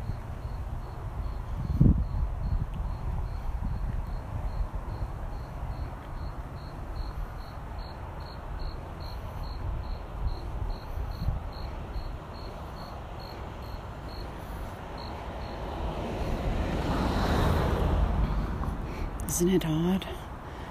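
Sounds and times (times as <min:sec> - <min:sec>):
crickets chirping at night: 0:00.0 - 0:20.7
big SUV driving by at night: 0:11.5 - 0:19.2
speech: 0:19.4 - 0:20.1.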